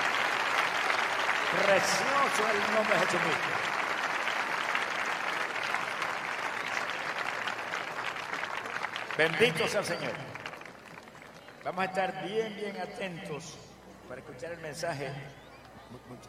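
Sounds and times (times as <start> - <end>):
audience applauding: 0.0 - 12.2
speech: 1.5 - 3.8, 9.2 - 10.4, 11.6 - 16.2.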